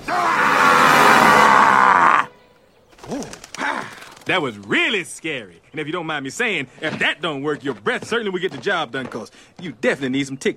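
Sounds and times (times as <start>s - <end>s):
Shrek the ogre roaring: 0.0s - 2.3s
speech: 4.3s - 10.5s.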